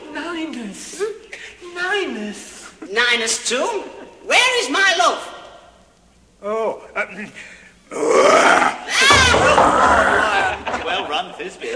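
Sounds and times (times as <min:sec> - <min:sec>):
speech: 0:00.4 - 0:05.3, 0:06.4 - 0:10.3, 0:10.9 - 0:11.7
actor imitating a lion's roar: 0:07.9 - 0:10.5.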